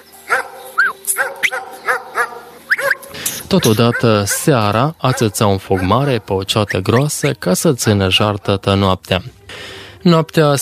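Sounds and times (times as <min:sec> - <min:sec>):
dog barking: 0:00.2 - 0:03.1, 0:03.7 - 0:06.3, 0:06.9 - 0:08.6
speech: 0:03.5 - 0:10.6.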